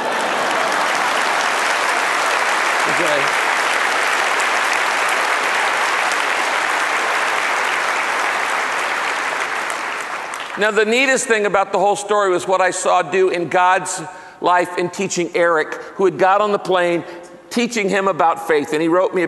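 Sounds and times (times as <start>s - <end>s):
audience applause: 0.0s - 11.2s
speech: 3.0s - 3.4s, 10.6s - 19.2s.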